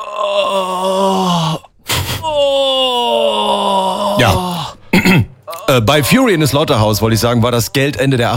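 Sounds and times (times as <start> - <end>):
person moaning, imitating the dubbing of an erotic film: 0.0 - 4.8
speech: 0.2 - 1.0, 5.2 - 8.3.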